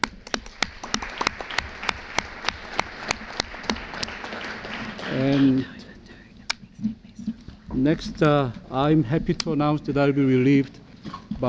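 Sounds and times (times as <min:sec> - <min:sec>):
audience applause for panelists: 0:00.0 - 0:06.0
speech: 0:07.8 - 0:10.8.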